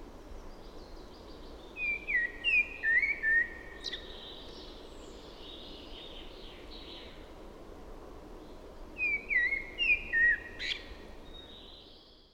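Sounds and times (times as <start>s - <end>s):
common blackbird singing: 1.8s - 4.1s, 9.0s - 10.9s.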